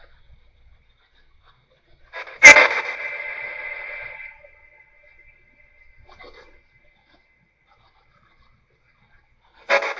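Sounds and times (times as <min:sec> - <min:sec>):
living room portal sound: 0:02.2 - 0:06.4.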